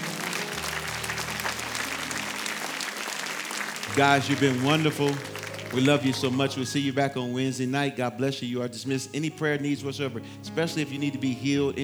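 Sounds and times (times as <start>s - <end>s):
audience clapping in praise: 0.0s - 7.6s
laughter: 0.0s - 11.8s
speech: 4.0s - 11.8s.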